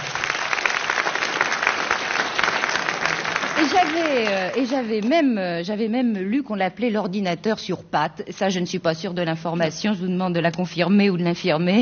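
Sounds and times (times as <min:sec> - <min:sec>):
crowd applauding: 0:00.0 - 0:05.1
speech: 0:03.6 - 0:11.7.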